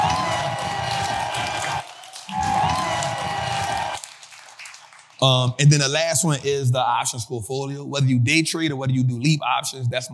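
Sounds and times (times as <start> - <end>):
audience clapping: 0.0 - 6.0
speech: 5.2 - 10.1.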